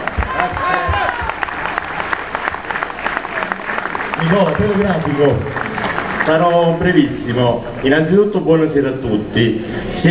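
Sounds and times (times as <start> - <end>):
voices cheering: 0.0 - 6.4
crowd applause: 0.0 - 8.0
speech: 4.3 - 5.6, 6.3 - 10.0.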